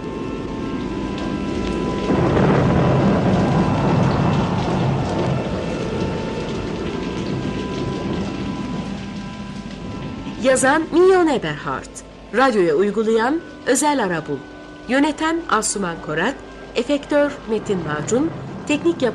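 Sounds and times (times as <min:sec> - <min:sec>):
steady heavy rain hissing: 0:00.0 - 0:19.1
deep rumbling roll of thunder: 0:00.4 - 0:11.6, 0:16.0 - 0:19.1
speech: 0:10.5 - 0:19.1.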